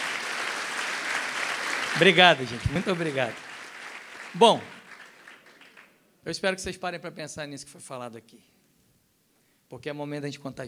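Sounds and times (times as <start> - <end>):
audience applause: 0.0 - 6.0
speech: 2.0 - 3.5, 4.3 - 4.8, 6.2 - 8.5, 9.7 - 10.6.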